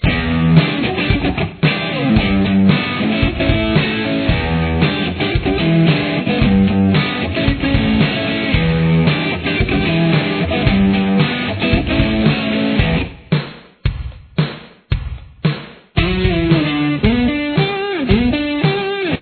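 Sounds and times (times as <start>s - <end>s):
guitar playing a verse: 0.0s - 13.2s, 16.0s - 19.2s.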